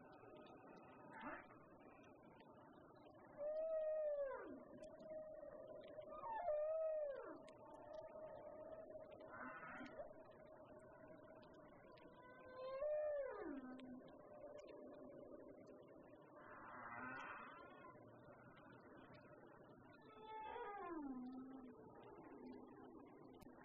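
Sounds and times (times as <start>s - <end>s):
humpback whale song: 3.0s - 23.4s.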